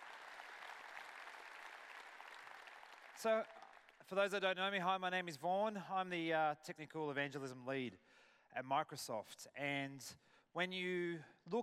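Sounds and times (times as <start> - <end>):
audience applause at a Microsoft technical presentation: 0.0 - 4.0
speech: 3.2 - 11.6.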